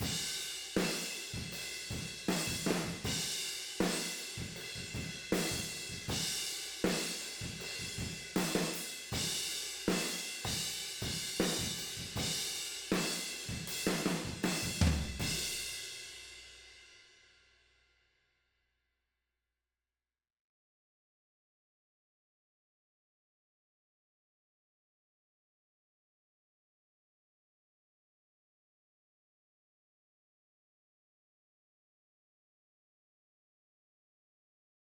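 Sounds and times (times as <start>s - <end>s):
tom drums: 0.0s - 15.9s.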